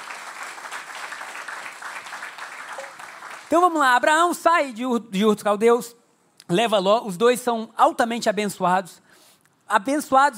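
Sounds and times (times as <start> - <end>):
audience applause: 0.0 - 3.5
speech: 3.5 - 9.0, 9.7 - 10.3.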